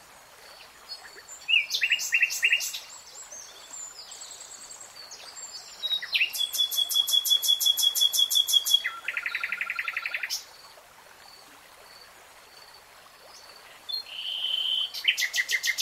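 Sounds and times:
nightingale song: 0.9 - 10.4, 13.3 - 15.8.

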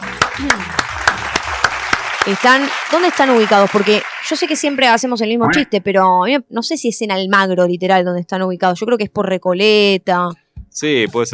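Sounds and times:
applause: 0.0 - 5.2
speech: 0.4 - 0.9, 2.3 - 11.3.

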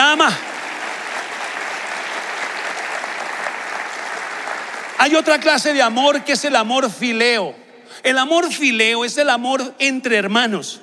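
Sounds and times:
audience applause: 0.0 - 6.3
speech: 5.0 - 10.8.

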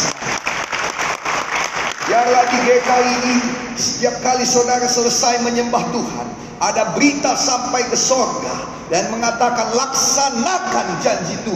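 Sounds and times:
audience clapping hands: 0.0 - 3.6
speech: 2.2 - 11.5.

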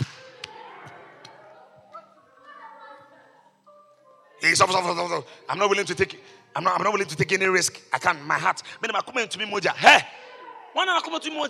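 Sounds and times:
hand claps: 0.0 - 1.4
speech: 4.4 - 10.2, 10.8 - 11.4
person speaking loudly: 4.4 - 11.4.

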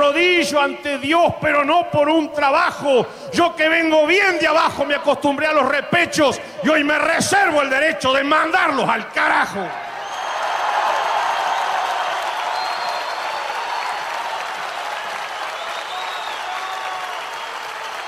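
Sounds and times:
speech: 0.5 - 9.9
audience applause after a song: 9.9 - 18.0.

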